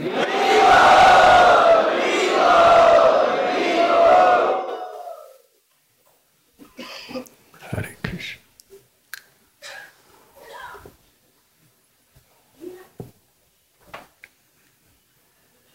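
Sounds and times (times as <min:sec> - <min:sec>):
temple crowd chanting loudly together in welcome: 0:00.0 - 0:05.4.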